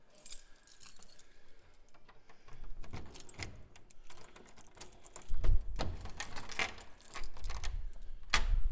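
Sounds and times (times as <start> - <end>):
door unlocking: 1.0 - 8.6.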